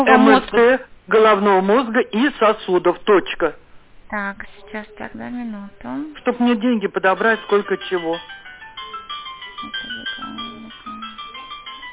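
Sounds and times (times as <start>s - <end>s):
speech: 0.0s - 8.4s
mobile phone ringtone electronic melody: 7.2s - 11.9s.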